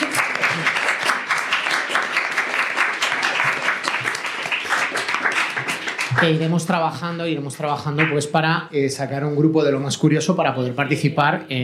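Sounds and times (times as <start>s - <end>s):
audience applause: 0.0s - 6.7s
speech: 6.2s - 11.6s.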